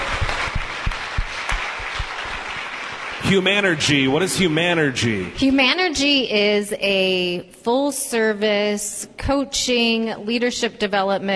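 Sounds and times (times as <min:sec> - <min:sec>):
audience applause: 0:00.0 - 0:05.3
speech: 0:03.3 - 0:11.3.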